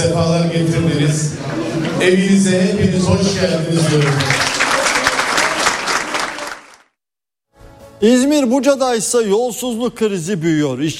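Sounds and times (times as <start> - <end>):
speech: 0.0 - 4.5, 8.0 - 10.9
municipal staff and party members clapping to greet an acting mayor: 3.8 - 7.0.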